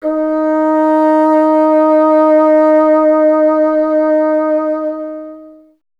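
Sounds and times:
bassoon: 0.0s - 5.8s.

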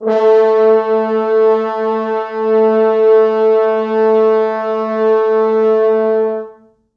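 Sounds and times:
four French horns sustaining: 0.0s - 6.6s.

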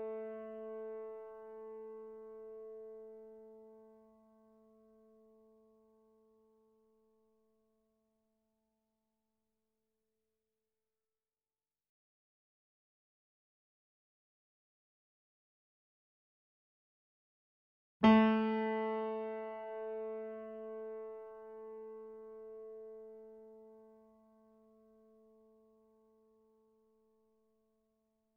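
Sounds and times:
sample piano: 0.0s - 6.3s, 18.0s - 25.9s.

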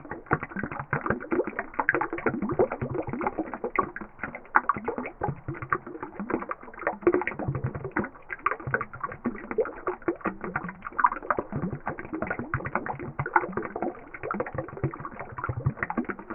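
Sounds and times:
slow water loop: 0.0s - 16.3s.

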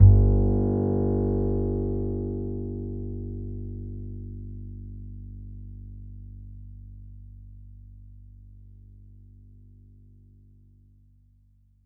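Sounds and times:
upright acoustic bass in E: 0.0s - 7.1s.

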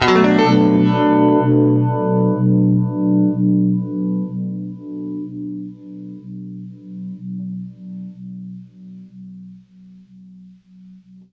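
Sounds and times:
guitar playing B minor seventh chord through univibe effect: 0.0s - 10.6s.

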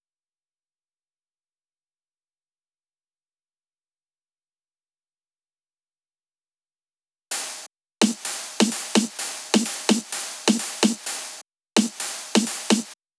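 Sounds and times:
drum loop at 128 BPM: 7.3s - 13.0s.

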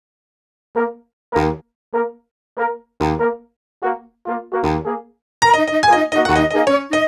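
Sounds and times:
horns: 0.8s - 7.0s
piano: 5.4s - 7.0s.

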